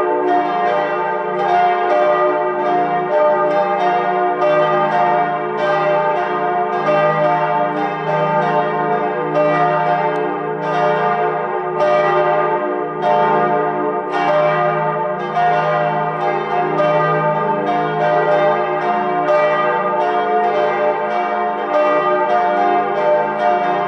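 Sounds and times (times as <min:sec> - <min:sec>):
church bells ringing: 0:00.0 - 0:23.8.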